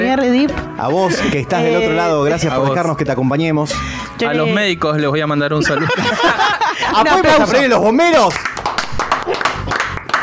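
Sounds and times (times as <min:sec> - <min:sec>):
speech: 0:00.1 - 0:08.6
laughter: 0:05.6 - 0:07.6
hands clapping: 0:08.0 - 0:10.2.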